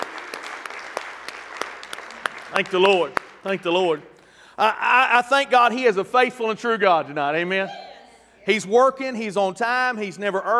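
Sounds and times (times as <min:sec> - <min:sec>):
audience applause: 0:00.0 - 0:03.8
speech: 0:02.5 - 0:07.8, 0:08.4 - 0:10.5.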